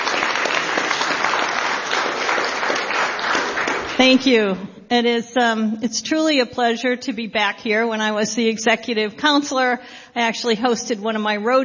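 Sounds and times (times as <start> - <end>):
crowd applauding: 0.0 - 4.2
speech: 4.0 - 11.6.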